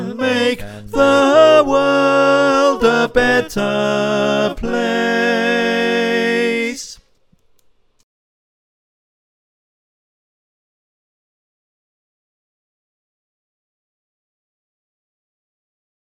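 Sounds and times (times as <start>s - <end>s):
choir singing: 0.0s - 7.0s
tenor voice: 0.0s - 7.0s.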